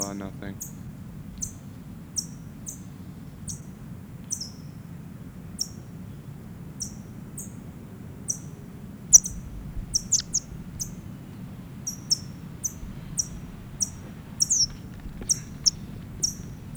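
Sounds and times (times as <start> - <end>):
small bird giving chip calls from a bag: 0.0 - 3.7, 4.3 - 4.7, 8.3 - 16.7
low continuous rumble: 0.0 - 16.7.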